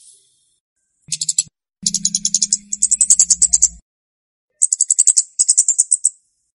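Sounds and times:
flowerpecker giving rapid high rattling ticks: 1.1s - 3.8s.

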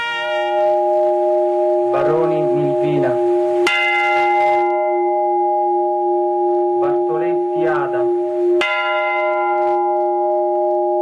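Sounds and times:
church bells tolling in memory of victims: 0.2s - 10.9s
voices at a night vigil: 1.9s - 3.3s, 6.8s - 8.3s.

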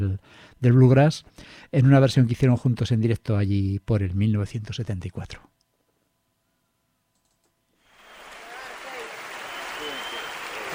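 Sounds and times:
speech: 0.0s - 5.5s
live concert audience applause: 7.8s - 10.7s
faint cheers: 7.9s - 10.7s.

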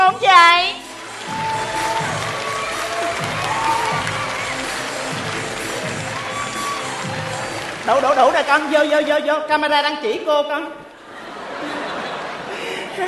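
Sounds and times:
crowd clapping for contestant number 3: 0.7s - 9.3s
speech: 7.9s - 10.8s
laughter: 11.0s - 13.0s.

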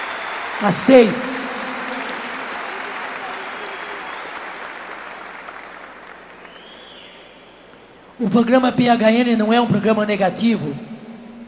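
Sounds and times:
audience applauding at a religious sermon: 0.0s - 8.0s
speech: 0.6s - 1.4s, 8.2s - 10.9s.

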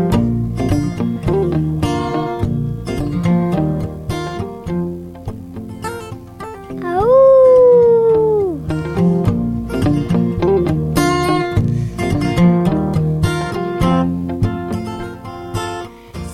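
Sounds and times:
busy rhythmic music with plucked and percussive notes: 0.0s - 16.3s
wolf howling: 6.8s - 8.6s.

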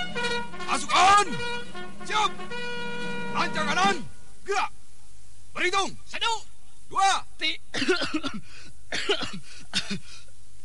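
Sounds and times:
coughing: 0.0s - 1.8s, 7.7s - 10.2s
speech: 1.2s - 2.5s, 3.4s - 4.8s, 5.6s - 10.0s.

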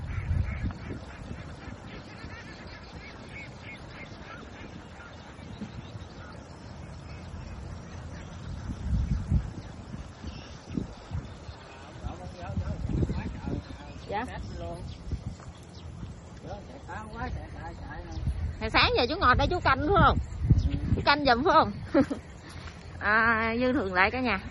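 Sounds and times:
flock of laying ducks quacking and honking while eating: 0.0s - 24.4s
speech: 19.0s - 20.3s, 21.0s - 22.2s, 23.0s - 24.4s.

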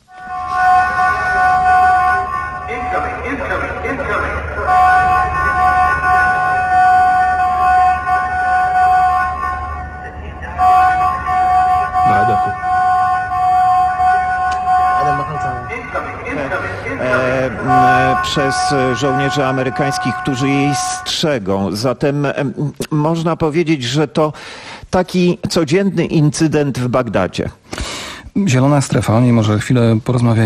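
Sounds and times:
loud high-pitched alarm siren in Baghdad green zone: 0.0s - 21.7s
speech: 18.5s - 27.6s, 28.4s - 30.4s.

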